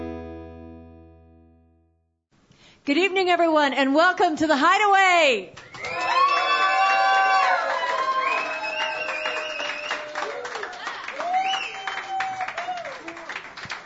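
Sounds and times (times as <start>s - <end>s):
speech: 2.9s - 6.1s
room full of people cheering: 5.5s - 13.8s
steady clapping: 5.5s - 13.8s.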